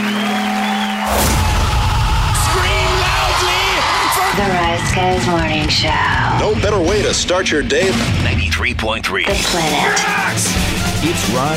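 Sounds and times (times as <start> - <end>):
loud crowd cheering: 0.0 - 7.5, 9.3 - 11.0
speech: 5.0 - 11.5.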